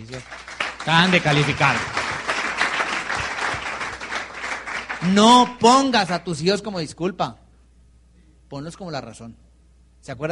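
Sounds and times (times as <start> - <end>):
speech: 0.0 - 2.0, 5.0 - 7.4, 8.5 - 9.4, 10.0 - 10.3
audience applause: 0.0 - 6.4.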